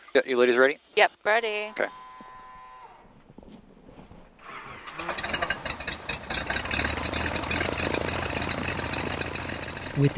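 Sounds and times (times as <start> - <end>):
speech: 0.2 - 2.0, 10.0 - 10.1
light aircraft piston engine run-up: 4.5 - 10.1.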